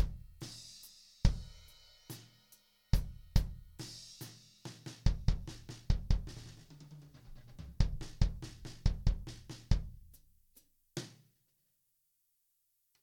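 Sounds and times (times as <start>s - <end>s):
drum solo: 0.0s - 10.3s.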